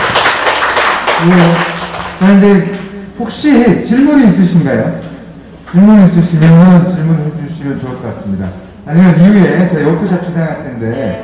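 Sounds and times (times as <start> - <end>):
audience applause: 0.0 - 2.5
speech: 1.2 - 5.1, 5.7 - 11.2.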